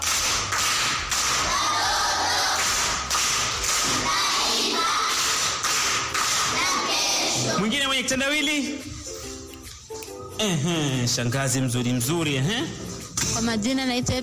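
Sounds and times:
group applause for a pupil at a primary-school riddle session: 0.0s - 7.4s
speech: 8.0s - 8.9s, 10.4s - 14.2s.

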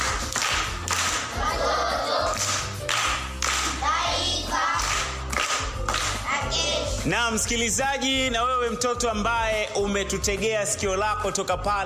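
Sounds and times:
many hands clapping in a children's radio program: 0.0s - 1.4s, 2.0s - 4.0s, 4.7s - 6.5s
speech: 7.1s - 11.8s.

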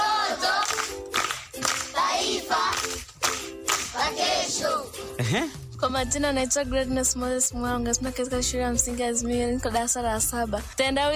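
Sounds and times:
applause at a primary school riddle event: 0.2s - 4.2s
speech: 5.3s - 11.1s.

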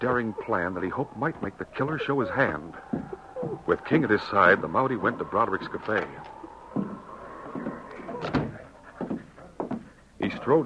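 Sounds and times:
speech: 0.0s - 6.3s, 10.3s - 10.6s
door creaking open: 5.8s - 8.6s.

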